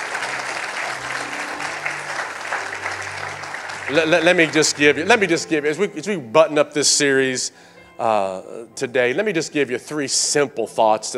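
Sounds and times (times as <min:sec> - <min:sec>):
audience clapping: 0:00.0 - 0:05.5
speech: 0:03.9 - 0:11.1.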